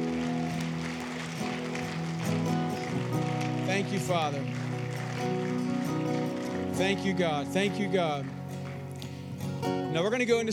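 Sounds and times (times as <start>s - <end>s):
audience clapping hands: 0.0s - 10.2s
speech: 3.8s - 4.6s, 6.8s - 8.4s, 9.6s - 10.5s.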